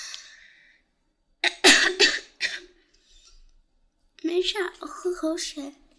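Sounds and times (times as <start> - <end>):
person coughing after choking on own saliva: 1.4 - 2.8
speech: 4.4 - 5.8.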